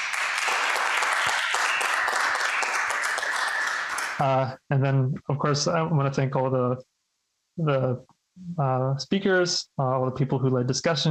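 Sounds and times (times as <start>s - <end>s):
audience applause: 0.0s - 4.3s
speech: 4.2s - 6.9s, 7.6s - 11.0s.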